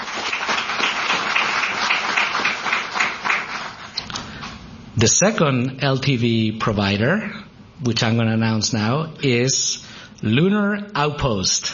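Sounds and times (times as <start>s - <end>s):
audience applause: 0.0s - 4.0s
speech: 5.0s - 11.7s.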